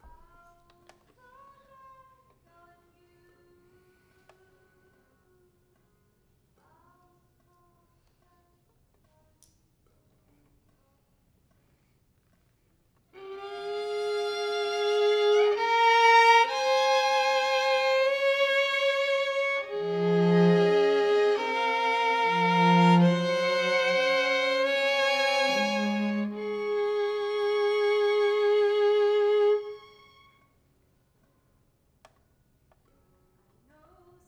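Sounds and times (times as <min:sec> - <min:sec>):
violin: 0:13.2 - 0:30.7.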